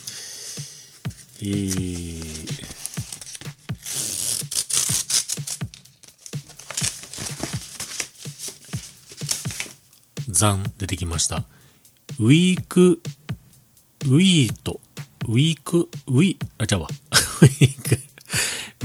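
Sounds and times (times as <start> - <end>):
speech: 1.4 - 2.5, 10.4 - 11.6, 12.2 - 13.1, 14.0 - 18.0
brown paper envelope being torn open: 1.4 - 9.8
laughter: 17.1 - 18.2.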